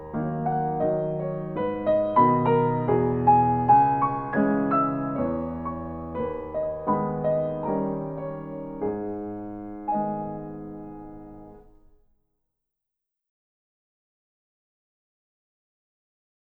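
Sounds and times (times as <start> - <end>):
waltz in G sharp minor: 0.0 - 11.8.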